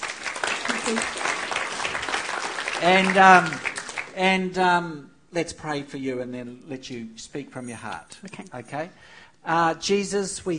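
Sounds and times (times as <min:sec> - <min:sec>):
crowd clapping: 0:00.0 - 0:04.3
speech: 0:00.9 - 0:01.3, 0:02.8 - 0:10.5.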